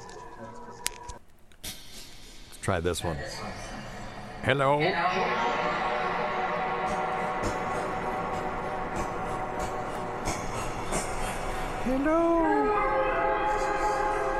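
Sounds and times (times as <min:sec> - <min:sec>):
speech: 0:02.6 - 0:03.7, 0:04.4 - 0:05.9, 0:11.9 - 0:13.0
voice with reverb and heavy delay effect: 0:03.0 - 0:14.3.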